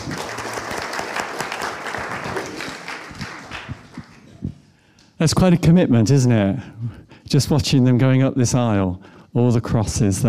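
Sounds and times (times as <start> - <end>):
crowd applauding: 0.0 - 4.5
speech: 5.2 - 10.2.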